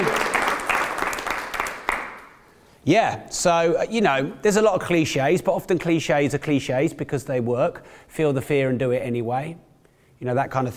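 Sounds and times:
audience applause: 0.0s - 2.4s
speech: 2.9s - 10.7s.

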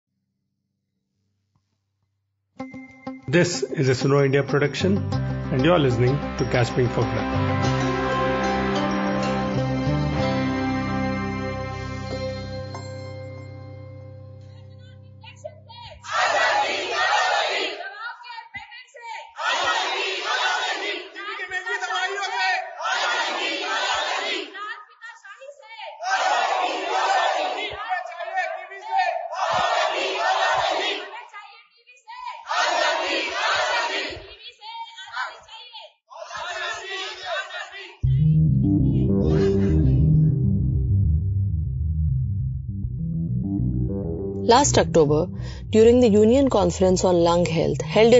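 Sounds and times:
speech: 2.6s - 7.8s, 44.6s - 48.1s
musical tone: 2.6s - 15.3s, 38.0s - 48.1s
crowd of protesters chanting slogans: 16.0s - 18.1s, 19.1s - 24.8s, 25.8s - 31.5s, 32.1s - 38.0s.

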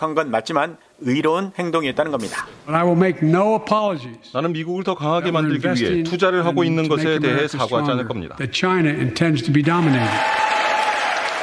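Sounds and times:
speech: 0.0s - 10.4s
standing ovation applause in legislative chamber: 9.6s - 11.4s.

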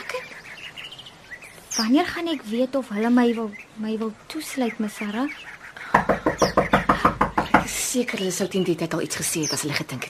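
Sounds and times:
speech: 1.8s - 5.5s, 7.9s - 10.0s
firm knocking at a door: 5.9s - 7.8s.

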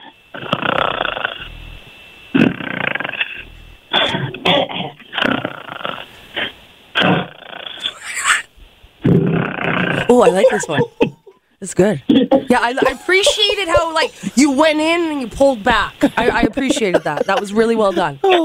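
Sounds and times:
voice imitating snoring: 0.3s - 8.4s, 9.0s - 10.2s
laughter: 10.0s - 11.4s, 12.1s - 14.6s, 16.0s - 18.4s
speech: 10.2s - 18.4s.

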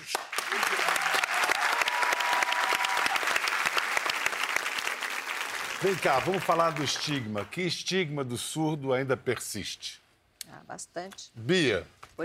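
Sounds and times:
group applause: 0.0s - 7.7s
speech: 5.8s - 10.0s, 10.6s - 12.2s.

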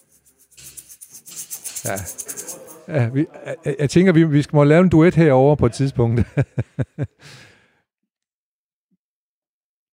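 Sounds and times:
egg shaker rattling: 0.0s - 3.2s
speech: 1.8s - 7.5s
laughter: 1.9s - 4.4s, 5.4s - 7.2s.

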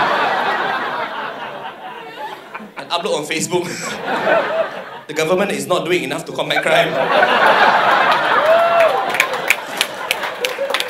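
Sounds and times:
audience laughing: 0.0s - 5.3s, 6.5s - 10.8s
speech: 3.0s - 8.1s
audience clapping: 7.5s - 10.8s.

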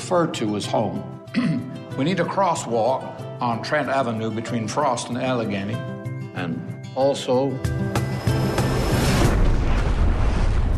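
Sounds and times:
speech: 0.1s - 8.1s
crash of a UFO landing in a backyard: 8.2s - 10.7s.

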